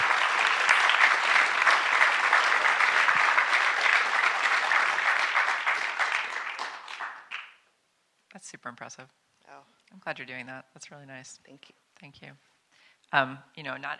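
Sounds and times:
audience applause: 0.0 - 7.6
speech: 8.9 - 12.5, 13.1 - 13.9.

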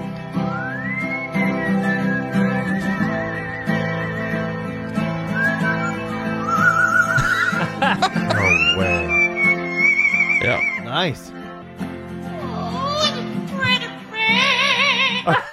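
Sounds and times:
strummed guitar chords: 0.0 - 15.5
pet bird whistling a melodic tune: 0.2 - 7.6, 8.2 - 10.9
laughter: 6.6 - 9.3, 15.3 - 15.5
speech: 11.0 - 11.4.

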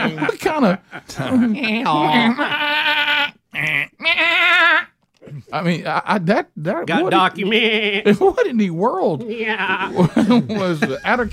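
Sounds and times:
laughter: 0.0 - 2.7, 9.3 - 11.3
speech: 0.0 - 3.0, 5.5 - 11.3
goat bleating: 1.4 - 5.0, 7.1 - 8.1, 9.2 - 10.0.

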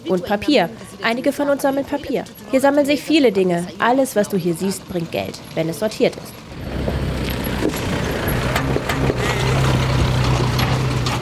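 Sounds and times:
speech: 0.0 - 6.4
rattly small van engine driving over rubbish: 3.5 - 11.2.

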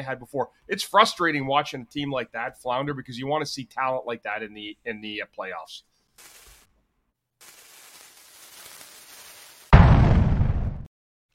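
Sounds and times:
speech: 0.0 - 6.4
Bundy bomb explosion sound effect: 9.7 - 10.9.

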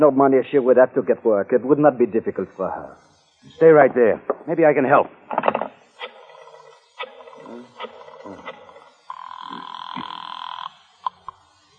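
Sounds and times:
speech: 0.0 - 6.1
telephone ringing: 6.0 - 10.8.

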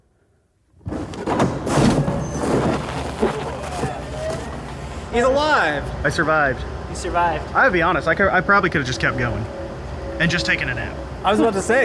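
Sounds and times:
door being opened with scraping rumble: 0.9 - 4.9
speech: 5.2 - 9.6, 10.2 - 11.8.

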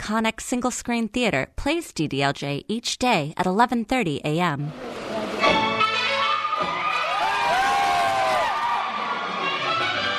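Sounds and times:
speech: 0.1 - 5.6
cinema audience cheering and clapping: 6.0 - 10.1.

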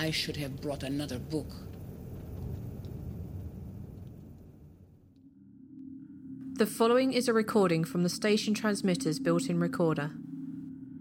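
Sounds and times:
speech: 0.0 - 1.7, 6.6 - 10.3
storm wind rumbling outside: 0.0 - 5.1.

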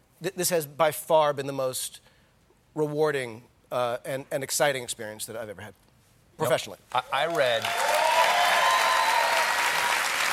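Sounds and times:
speech: 0.2 - 2.1, 2.8 - 5.8, 6.4 - 7.8
crowd applauding: 7.1 - 10.3.

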